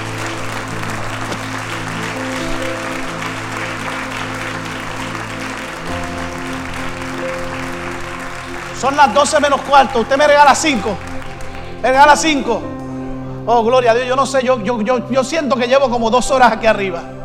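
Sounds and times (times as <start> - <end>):
audience applauding: 0.0 - 12.6
speech: 8.8 - 11.1, 11.8 - 12.7, 13.5 - 17.2.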